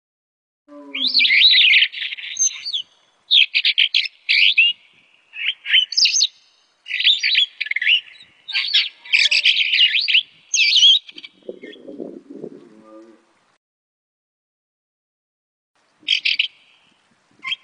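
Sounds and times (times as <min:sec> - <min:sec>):
starling singing: 0:00.7 - 0:13.2.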